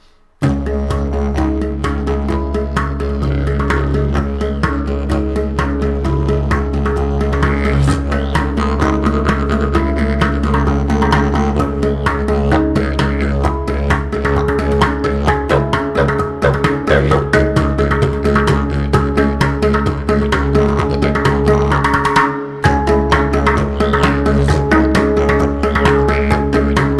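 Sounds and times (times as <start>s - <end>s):
didgeridoo: 0.0s - 26.9s.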